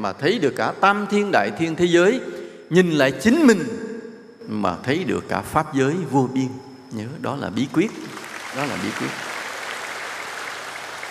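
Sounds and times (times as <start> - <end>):
speech: 0.0 - 3.8, 4.5 - 9.3
audience applause: 7.7 - 11.0.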